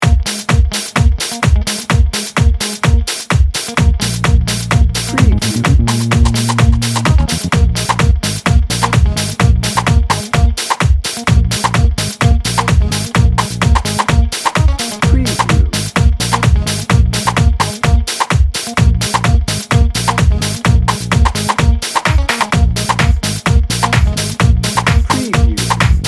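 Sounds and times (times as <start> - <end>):
funk music bed: 0.0 - 26.0.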